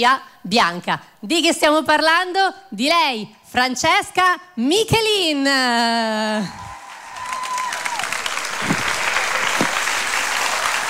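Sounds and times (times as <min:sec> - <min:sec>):
speech: 0:00.0 - 0:06.6
audience applause and cheering: 0:06.5 - 0:10.8.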